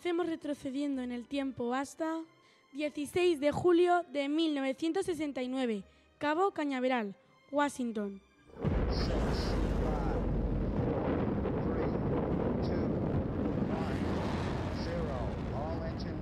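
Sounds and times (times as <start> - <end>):
speech: 0.0 - 9.5
Saturn V rocket lifting off on the Apollo 11 mission from Cape Canaveral: 8.6 - 16.2.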